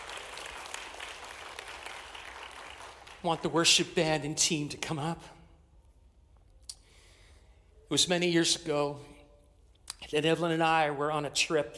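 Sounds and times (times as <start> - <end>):
audience clapping in praise: 0.0 - 3.4
speech: 3.2 - 5.4, 7.9 - 9.2, 10.0 - 11.7.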